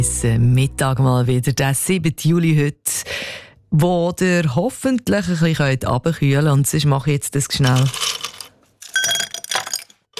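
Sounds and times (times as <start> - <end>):
speech: 0.0 - 8.1
ice cubes dropping into a glass: 7.6 - 10.1.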